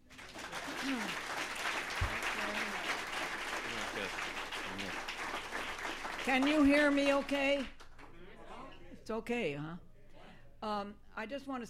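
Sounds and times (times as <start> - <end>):
audience applause welcoming a speaker: 0.0 - 7.8
speech: 6.3 - 7.8, 9.1 - 9.9, 10.6 - 11.6.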